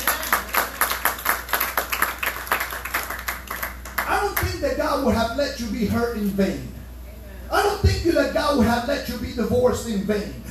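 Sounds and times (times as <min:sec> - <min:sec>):
audience clapping hands: 0:00.0 - 0:04.5
speech: 0:04.7 - 0:06.8, 0:07.5 - 0:10.4.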